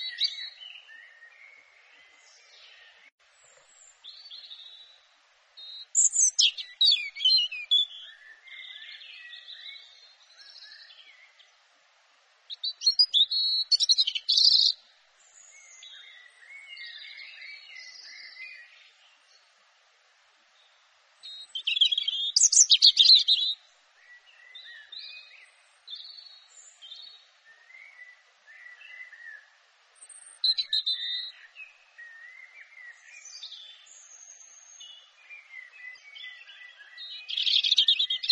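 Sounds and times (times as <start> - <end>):
European robin singing: 0.0 - 11.6, 12.5 - 19.6, 20.5 - 38.2.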